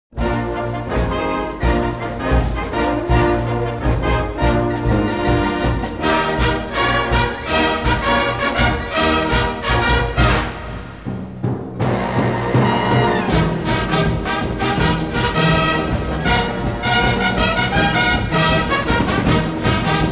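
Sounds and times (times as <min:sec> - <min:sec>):
fanfare: 0:00.1 - 0:20.1.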